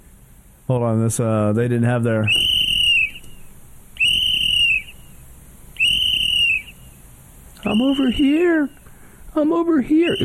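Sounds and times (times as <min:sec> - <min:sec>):
speech: 0:00.7 - 0:02.6, 0:07.6 - 0:08.8, 0:09.4 - 0:10.2
shrill whistle blasts: 0:02.2 - 0:05.2, 0:05.8 - 0:07.0, 0:07.6 - 0:08.9, 0:09.9 - 0:10.2.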